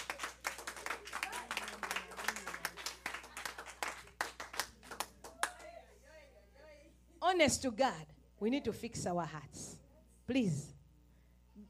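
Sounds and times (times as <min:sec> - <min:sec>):
crowd clapping: 0:00.0 - 0:05.8
speech: 0:07.4 - 0:09.6, 0:10.3 - 0:10.8.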